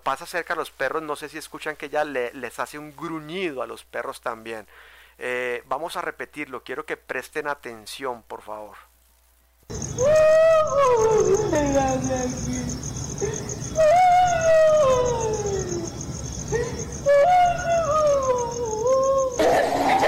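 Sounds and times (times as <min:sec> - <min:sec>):
speech: 0:00.0 - 0:08.9, 0:09.7 - 0:14.2
loud heart-rending wailing cry: 0:09.7 - 0:12.5, 0:13.2 - 0:20.0.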